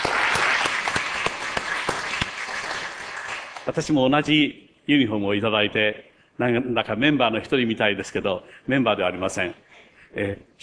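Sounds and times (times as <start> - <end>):
audience applause: 0.0 - 3.7
speech: 3.7 - 10.6.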